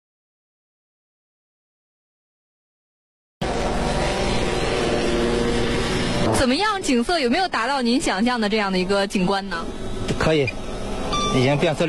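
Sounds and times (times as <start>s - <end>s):
camera drone for aerial photography whirring overhead: 3.4s - 11.8s
speech: 6.4s - 10.6s, 11.3s - 11.8s.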